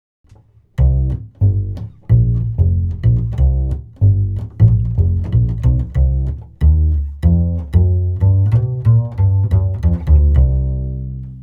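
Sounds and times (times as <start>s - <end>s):
double bass with 10 cm bridge: 0.3s - 11.4s.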